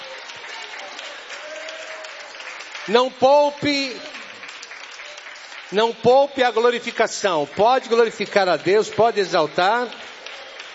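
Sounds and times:
audience applause: 0.0s - 10.7s
speech: 2.9s - 4.1s, 5.7s - 10.0s.

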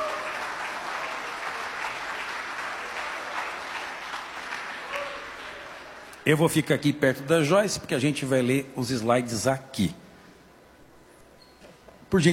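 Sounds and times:
audience applauding: 0.0s - 6.2s
speech: 6.3s - 10.0s, 12.1s - 12.3s.

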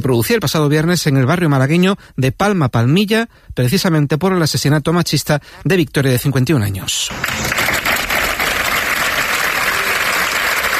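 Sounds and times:
speech: 0.0s - 7.8s
workers applauding farewell: 7.1s - 10.7s.

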